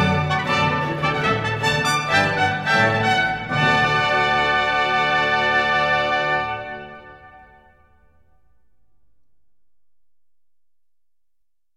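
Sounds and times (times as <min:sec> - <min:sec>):
baroque trumpets: 0:00.0 - 0:08.6.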